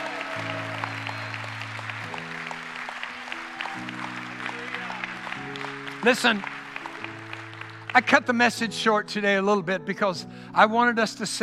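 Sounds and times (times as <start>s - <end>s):
church audience applauding: 0.0s - 8.6s
speech: 6.0s - 6.6s, 7.9s - 11.4s.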